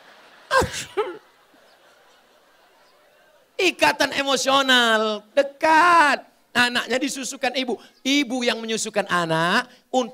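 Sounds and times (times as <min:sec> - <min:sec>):
laughter: 0:00.0 - 0:03.4
voice imitating a child's sneeze: 0:00.5 - 0:01.2
speech: 0:03.6 - 0:10.1.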